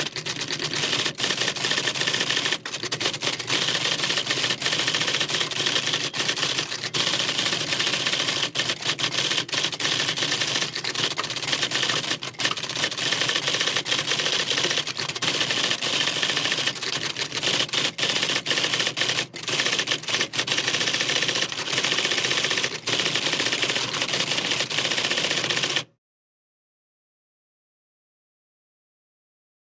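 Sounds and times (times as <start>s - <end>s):
modern electric typewriter typing: 0.0s - 25.9s.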